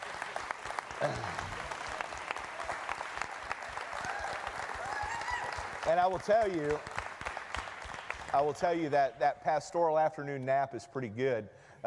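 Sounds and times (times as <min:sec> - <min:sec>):
audience applause: 0:00.0 - 0:08.8
speech: 0:01.0 - 0:01.6, 0:05.8 - 0:06.9, 0:08.3 - 0:11.8.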